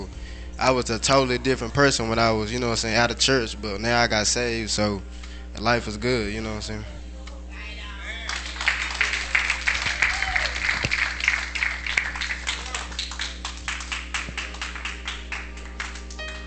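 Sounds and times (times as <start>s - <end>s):
speech: 0.6s - 7.0s
church congregation applause: 8.2s - 16.4s.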